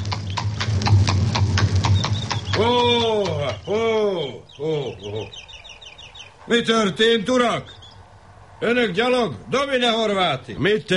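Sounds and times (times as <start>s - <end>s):
horse hooves clip-clopping as a baron approaches on horseback: 0.0s - 3.7s
speech: 4.3s - 5.4s, 6.5s - 7.8s, 8.6s - 10.9s.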